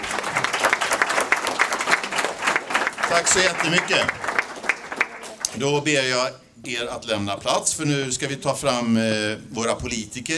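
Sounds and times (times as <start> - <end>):
audience applause at a community meeting in Floby, Sweden: 0.0 - 5.5
speech: 3.1 - 4.2, 5.6 - 10.3.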